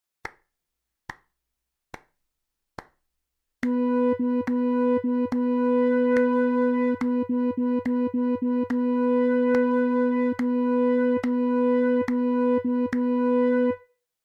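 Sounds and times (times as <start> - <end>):
rhythm practice: 3.6 - 13.7.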